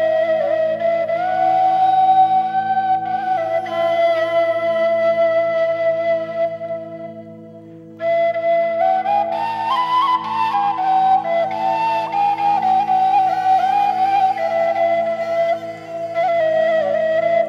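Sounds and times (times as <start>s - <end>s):
traditional flute: 0.0s - 17.4s.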